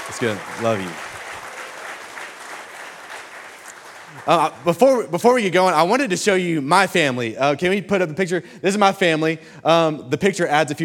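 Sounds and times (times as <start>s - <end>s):
audience applause: 0.0s - 4.8s
speech: 0.1s - 1.1s, 4.2s - 10.8s.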